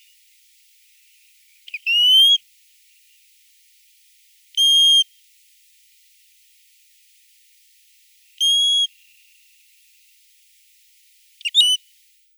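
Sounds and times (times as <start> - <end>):
Asian brown-winged plover calling: 1.7 - 2.4, 8.4 - 8.9, 11.4 - 11.8.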